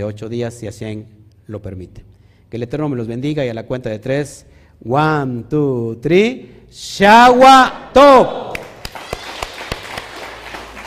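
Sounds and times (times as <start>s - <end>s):
speech: 0.0s - 8.4s
applause: 8.5s - 10.8s.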